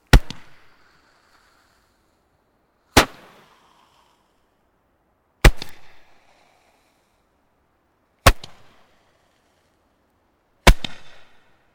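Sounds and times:
fireball shooter fireworks shots: 0.0s - 2.0s, 2.9s - 4.4s, 5.4s - 6.6s, 8.2s - 9.8s, 10.6s - 11.6s.

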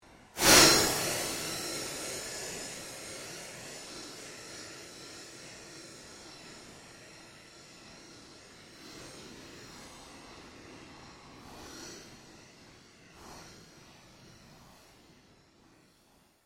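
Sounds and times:
drones: 0.1s - 15.8s
synth sweeps: 0.4s - 3.1s.

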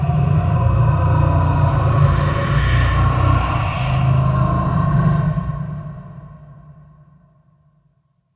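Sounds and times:
deep space demon alien sounds: 0.1s - 6.7s.

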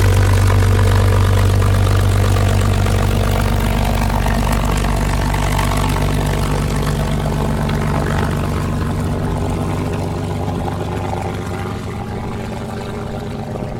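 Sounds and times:
CAC CA-18 Mustang Mk23 aircraft engine starting up: 0.0s - 13.7s.

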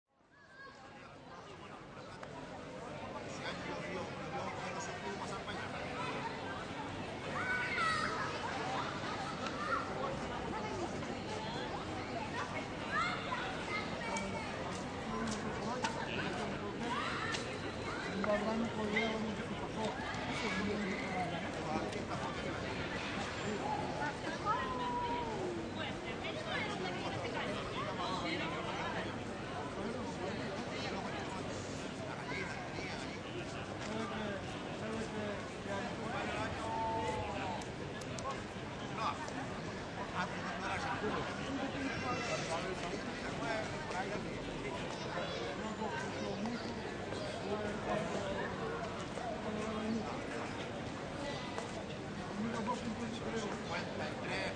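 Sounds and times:
crowd in a Spanish town plaza on a pedestrian street: 0.1s - 54.5s.

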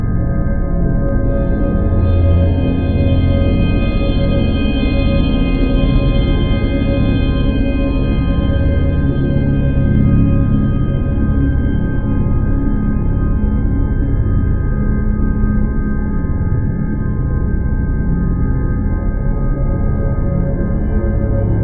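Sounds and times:
scary horror drone ambience: 0.0s - 21.6s.

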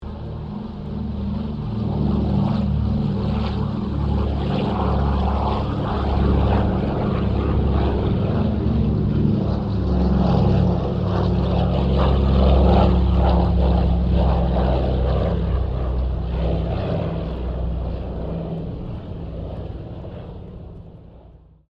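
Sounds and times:
DC3 aircraft squadron taking off: 0.0s - 21.7s.

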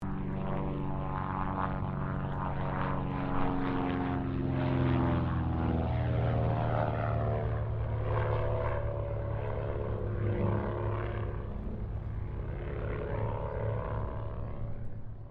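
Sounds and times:
distant Cessna O-1 Bird Dog spotter aircraft passing: 0.0s - 15.2s.

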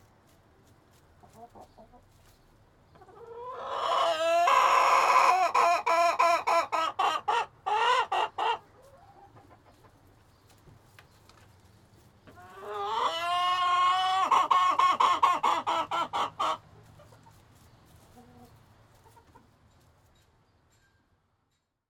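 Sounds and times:
chicken squawking: 3.0s - 9.6s, 12.4s - 17.4s.

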